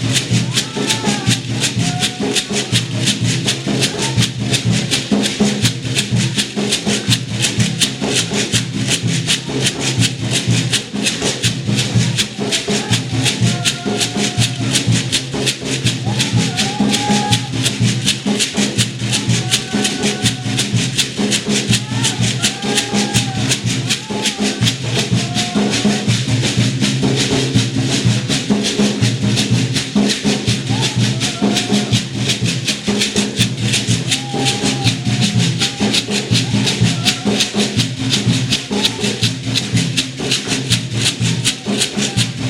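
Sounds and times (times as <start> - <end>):
drum roll: 0.0 - 42.4.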